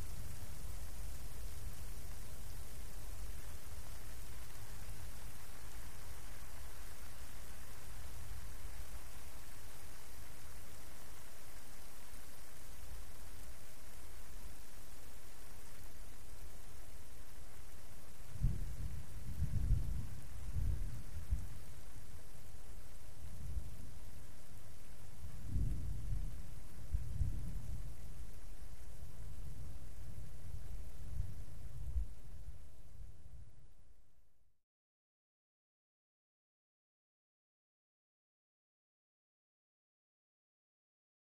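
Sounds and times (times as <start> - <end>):
rain on pine outdoors: 0.0 - 34.1.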